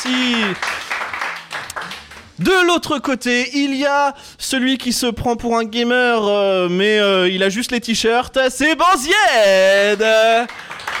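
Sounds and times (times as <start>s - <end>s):
applause for the co-host: 0.0s - 2.4s, 9.9s - 10.9s
speech: 0.1s - 0.8s, 2.4s - 10.7s.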